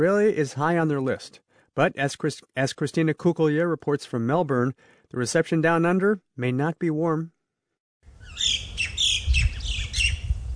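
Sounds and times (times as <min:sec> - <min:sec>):
speech: 0:00.0 - 0:07.4, 0:08.3 - 0:08.7
native Australian birds calling over fields: 0:08.2 - 0:10.3
bird chirps: 0:08.2 - 0:10.5.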